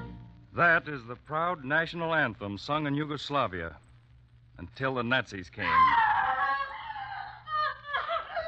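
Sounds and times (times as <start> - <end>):
speech: 0.6 - 3.9, 4.6 - 6.0
woman screaming in mental anguish: 5.6 - 8.4.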